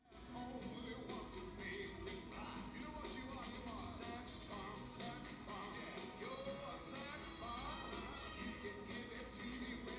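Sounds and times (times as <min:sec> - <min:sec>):
unmixed music: 0:00.0 - 0:09.9.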